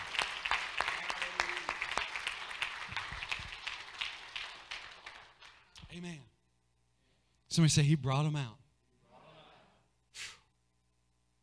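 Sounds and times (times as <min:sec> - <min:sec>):
audience clapping: 0:00.0 - 0:05.8
speech: 0:06.0 - 0:06.3, 0:07.6 - 0:08.6.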